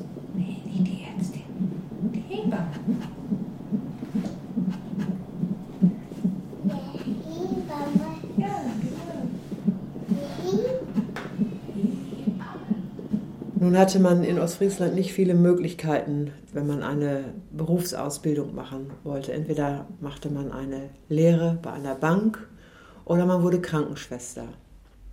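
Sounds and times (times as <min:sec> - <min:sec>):
fetal heartbeat from a fetal monitor: 0:00.0 - 0:20.7
speech: 0:13.7 - 0:22.5, 0:23.1 - 0:24.6.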